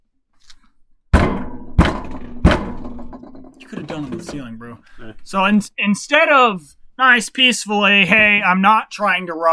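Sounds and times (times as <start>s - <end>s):
fist banging on a door: 1.1s - 3.6s
speech: 3.7s - 9.5s.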